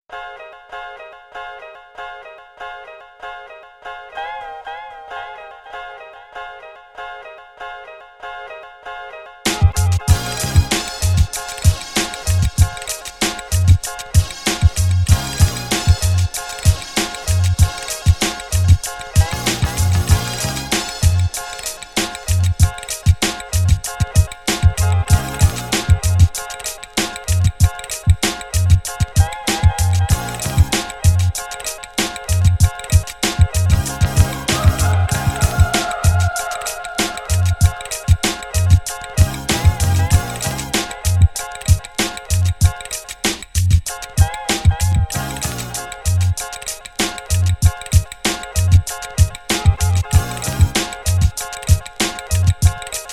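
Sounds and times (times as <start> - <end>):
music beat: 9.5 - 53.1.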